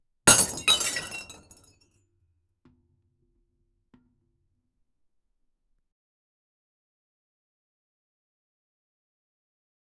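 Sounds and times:
earthen ceramic pot breaking: 0.3 - 1.6.

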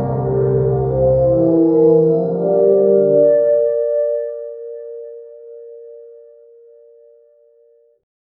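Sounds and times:
tavern ambience: 0.0 - 2.8
tavern background music: 0.0 - 6.5.

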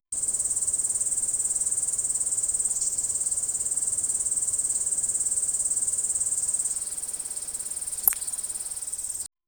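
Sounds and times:
insects: 0.0 - 9.3.

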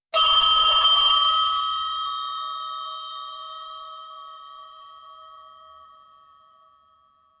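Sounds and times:
bells ringing: 0.2 - 5.6.

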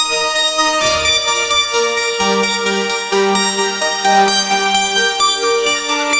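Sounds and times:
techno music: 0.2 - 6.1
sound effects: 0.6 - 2.0.

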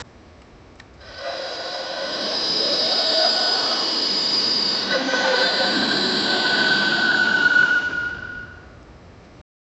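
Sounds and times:
effort vocalization: 1.0 - 8.7.

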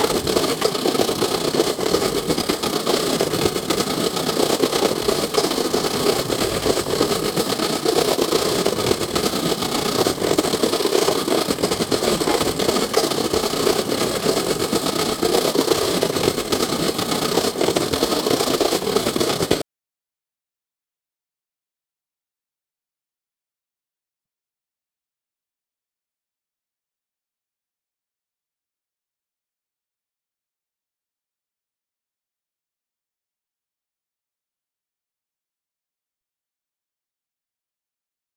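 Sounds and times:
steam engine: 0.0 - 19.6.

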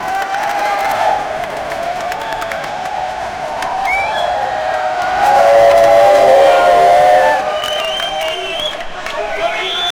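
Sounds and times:
crowd cheering and shouting at motorsports: 0.0 - 9.7.

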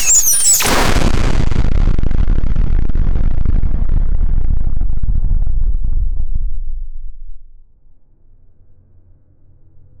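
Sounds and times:
massive energy pulse shock: 0.0 - 7.6.

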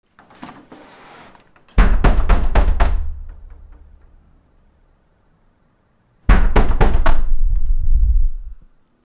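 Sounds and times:
door: 0.1 - 4.3, 6.3 - 7.4.

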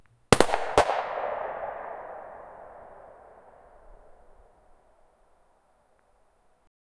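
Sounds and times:
37 millimetre artillery gun shot: 0.3 - 4.6.

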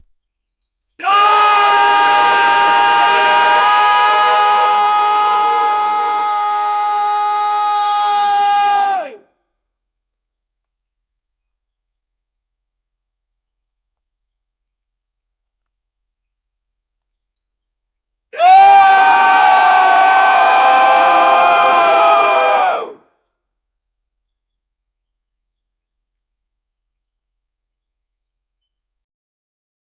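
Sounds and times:
crowd shouting at a party: 1.0 - 9.2, 18.4 - 23.0.

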